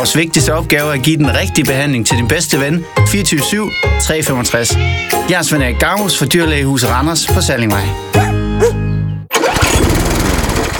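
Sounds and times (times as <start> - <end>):
speech: 0.0 - 8.8
lawn mower engine: 9.3 - 10.7.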